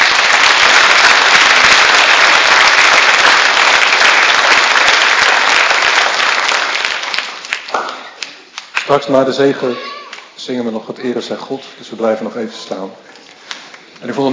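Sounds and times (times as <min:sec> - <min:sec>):
audience applause: 0:00.0 - 0:08.9
speech: 0:08.9 - 0:13.1, 0:14.0 - 0:14.3.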